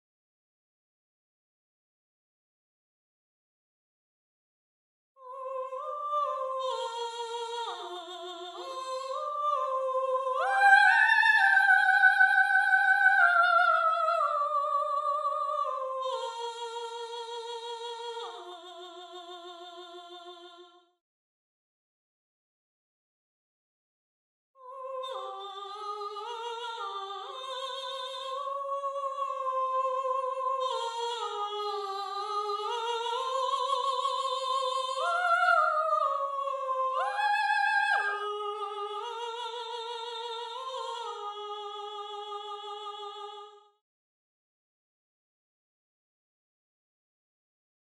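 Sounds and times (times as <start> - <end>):
soprano singing: 5.2 - 20.6, 24.6 - 43.6.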